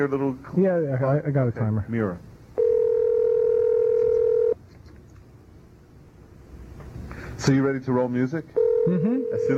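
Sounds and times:
speech: 0.0 - 2.3, 7.4 - 9.5
telephone line tone: 2.6 - 4.6, 8.6 - 9.5.

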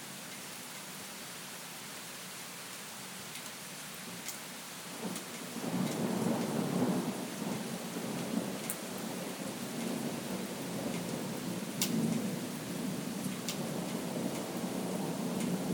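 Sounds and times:
thunderstorm: 5.0 - 15.7.

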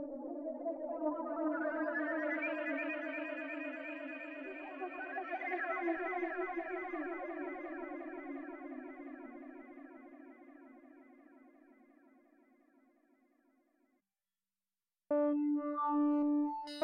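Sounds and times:
Animoog synthesizer on iPad: 0.1 - 10.9, 15.1 - 16.8.

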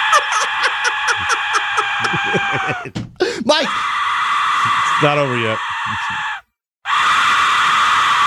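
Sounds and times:
laughter: 0.1 - 3.5
speech: 2.3 - 3.9, 5.0 - 6.3
Aztec death whistle breathy shriek: 3.7 - 8.2.

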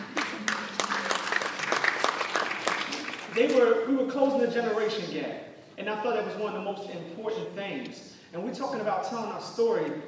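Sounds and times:
audience applause: 0.0 - 3.6
speech: 3.4 - 10.0.

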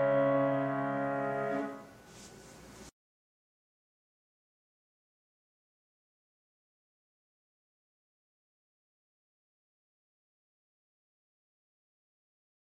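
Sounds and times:
piano: 0.0 - 2.0.

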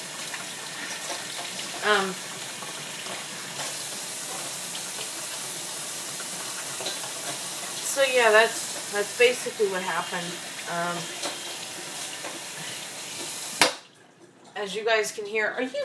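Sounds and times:
tap water running over hands being washed: 0.0 - 14.8
speech: 1.8 - 2.3, 8.0 - 11.2, 14.6 - 15.8.

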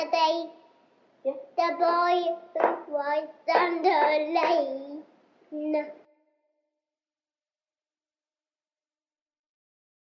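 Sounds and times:
nursery rhyme: 1.2 - 6.2.

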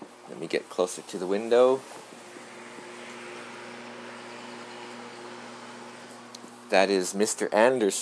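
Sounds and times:
speech: 0.3 - 2.0, 6.7 - 8.0
electric lawnmower mowing the lawn outside: 1.2 - 6.7.

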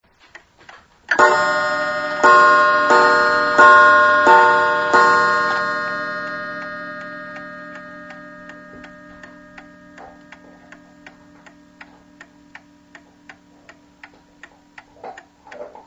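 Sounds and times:
chimes of a new clock: 1.1 - 14.8.

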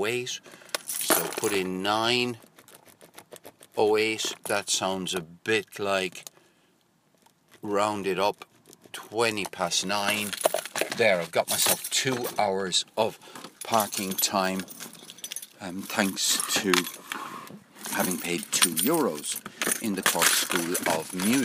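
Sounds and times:
speech: 0.0 - 2.5, 3.8 - 6.3, 7.6 - 14.8, 15.6 - 17.0, 18.0 - 21.4
set of keys jangling: 0.8 - 3.8, 10.0 - 12.5, 13.5 - 17.1, 17.8 - 21.4.

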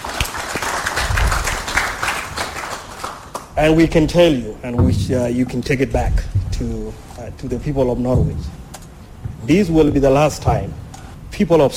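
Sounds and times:
audience applause: 0.0 - 3.6
speech: 3.6 - 8.6, 9.4 - 11.7.

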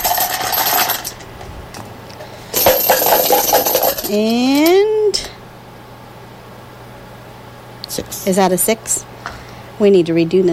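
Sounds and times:
number tokens shaken for a prize draw: 0.0 - 1.2, 2.5 - 4.8
speech: 4.1 - 4.6, 8.0 - 9.1, 9.8 - 10.5.

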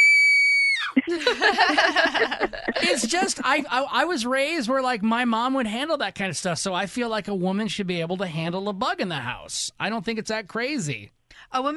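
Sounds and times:
woman screaming played back from an audio recording: 0.0 - 1.0
speech: 0.8 - 11.7
laughter: 1.0 - 3.7.

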